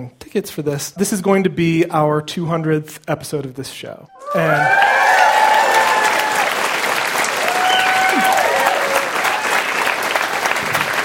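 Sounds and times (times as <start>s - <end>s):
speech: 0.0s - 5.1s
live show audience applause: 4.2s - 11.0s.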